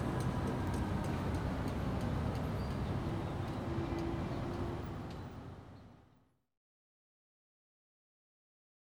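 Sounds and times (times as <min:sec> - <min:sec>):
fire engines emergency vehicles: 0:00.0 - 0:06.1.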